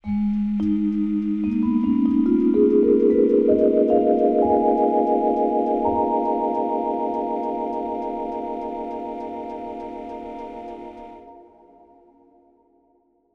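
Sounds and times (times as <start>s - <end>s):
music intro: 0.0s - 11.7s.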